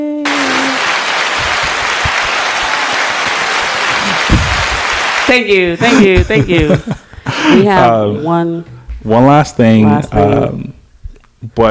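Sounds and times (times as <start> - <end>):
applause sound effect: 0.2 - 5.5
speech: 5.3 - 10.8, 11.4 - 11.7.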